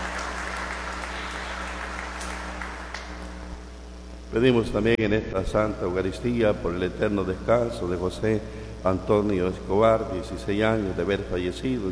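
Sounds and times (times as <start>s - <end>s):
crowd clapping: 0.0s - 3.6s
speech: 4.3s - 11.8s.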